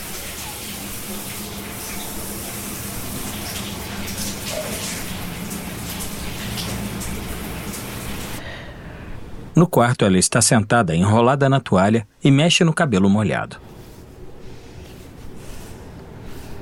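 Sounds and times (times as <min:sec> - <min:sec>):
shower running behind a shower curtain: 0:00.0 - 0:08.4
speech: 0:09.6 - 0:13.7.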